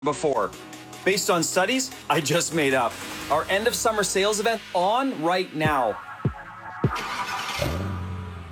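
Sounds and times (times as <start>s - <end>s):
speech: 0.0s - 6.1s
car being driven by an impaired driver: 6.9s - 8.5s.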